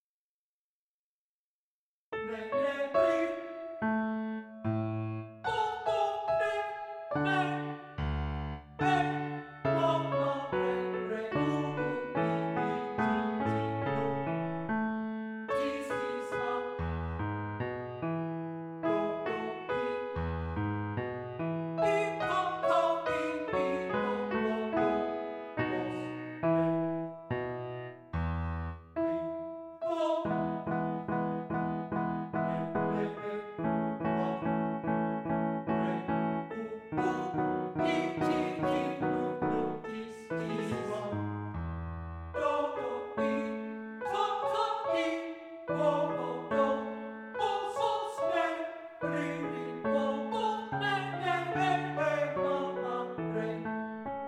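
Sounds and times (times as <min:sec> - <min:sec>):
art song for voice and piano: 0:02.2 - 0:54.2.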